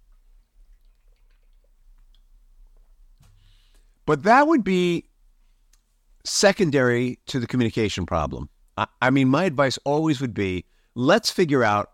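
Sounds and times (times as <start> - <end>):
sipping a drink of water: 0.0 - 3.2
speech: 4.1 - 5.1, 6.2 - 11.9.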